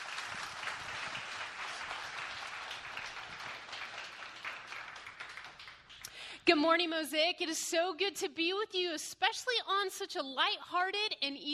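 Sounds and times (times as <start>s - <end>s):
church congregation applauding a guest speaker: 0.0s - 6.2s
speech: 6.4s - 11.5s.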